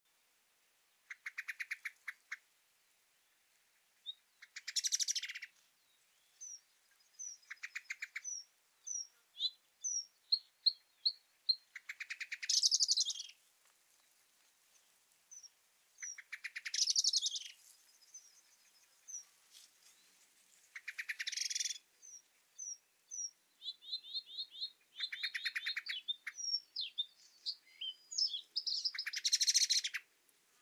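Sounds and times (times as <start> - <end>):
hiss: 0.1 - 30.6
common blackbird rattling calls: 1.1 - 2.4, 4.4 - 5.5, 11.7 - 13.3, 15.3 - 19.3, 20.7 - 22.7, 25.0 - 27.0, 27.6 - 30.0.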